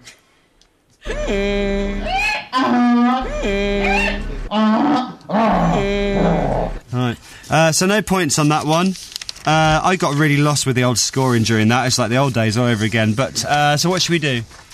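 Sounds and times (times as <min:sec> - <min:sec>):
donkey braying: 0:01.0 - 0:06.8
speech: 0:01.3 - 0:01.7, 0:07.7 - 0:14.7.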